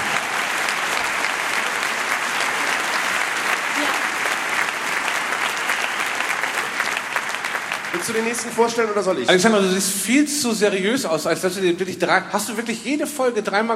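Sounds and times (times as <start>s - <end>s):
audience applause: 0.0s - 9.8s
speech: 8.0s - 13.7s.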